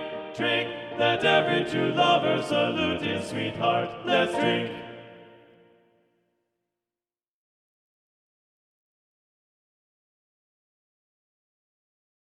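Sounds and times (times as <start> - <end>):
TTBB male choir singing a drinking song: 0.0 - 5.4.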